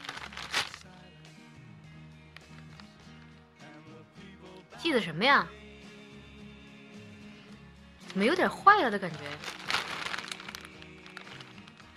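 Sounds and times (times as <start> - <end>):
package torn open along its tear strip: 0.0 - 0.9, 9.1 - 11.9
speech: 4.8 - 5.6, 8.2 - 9.6.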